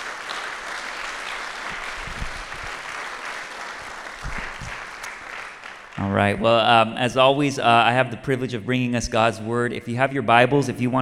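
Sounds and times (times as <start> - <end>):
audience applause: 0.0 - 6.1
speech: 6.0 - 11.0.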